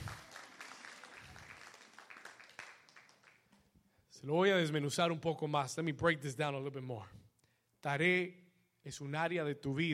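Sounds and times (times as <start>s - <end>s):
audience applause: 0.0s - 3.5s
speech: 4.2s - 7.2s, 7.8s - 9.9s.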